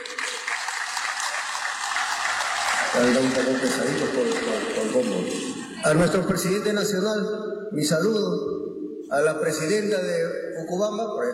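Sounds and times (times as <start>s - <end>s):
audience applause: 0.0s - 6.0s
speech: 2.9s - 11.3s.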